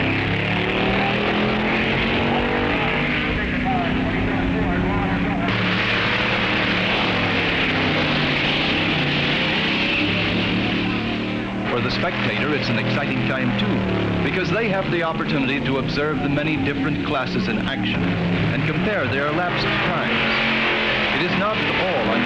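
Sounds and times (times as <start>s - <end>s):
race car engines roaring on test runs: 0.0s - 22.2s
speech: 12.6s - 20.5s, 21.2s - 22.2s.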